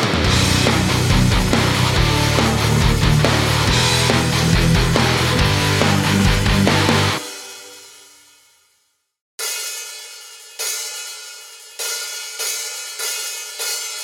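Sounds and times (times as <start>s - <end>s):
karaoke singing: 0.1s - 7.2s.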